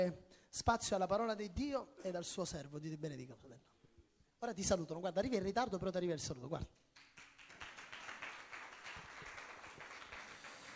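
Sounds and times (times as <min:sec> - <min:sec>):
speech: 0:00.0 - 0:03.7, 0:04.4 - 0:07.2
audience applauding: 0:07.0 - 0:10.7.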